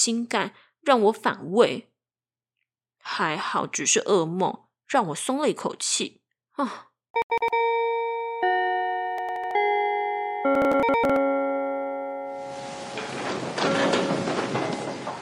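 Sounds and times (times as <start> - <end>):
speech: 0.0 - 1.9, 3.1 - 7.6
school bell ringing: 7.4 - 15.2.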